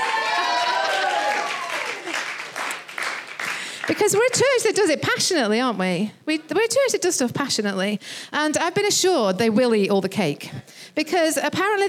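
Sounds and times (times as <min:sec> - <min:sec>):
audience clapping: 0:00.0 - 0:04.1
speech: 0:03.9 - 0:11.8.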